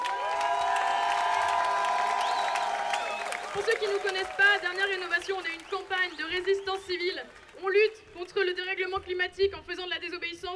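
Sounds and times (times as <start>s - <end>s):
whoops and raised voices: 0.0s - 3.8s
crowd clapping and cheering outside courthouse: 0.0s - 9.3s
speech: 3.6s - 10.5s.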